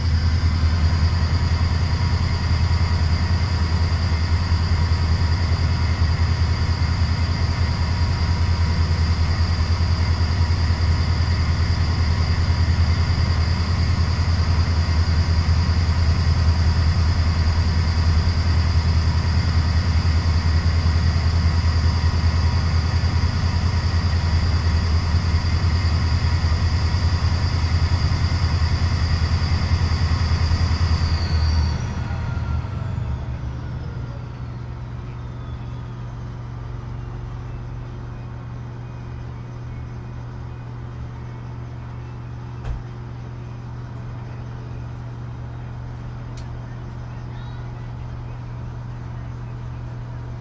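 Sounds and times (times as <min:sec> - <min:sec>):
ferry ship engine gearing down: 0:00.0 - 0:38.7.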